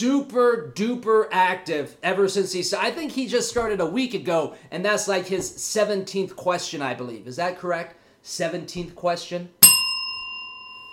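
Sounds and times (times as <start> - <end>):
speech: 0.0 - 9.6
bell ringing: 9.6 - 10.9.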